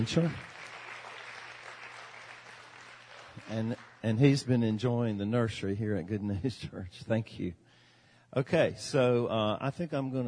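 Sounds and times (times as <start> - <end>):
speech: 0.0 - 0.5, 3.5 - 7.6, 8.3 - 10.2
crowd applause: 0.0 - 4.4.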